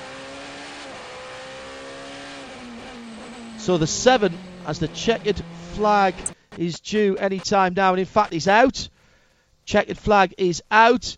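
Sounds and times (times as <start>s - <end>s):
race car engine at FIA WEC race through turn 19, Circuit of the Americas: 0.0s - 7.6s
speech: 3.6s - 8.9s, 9.7s - 11.1s.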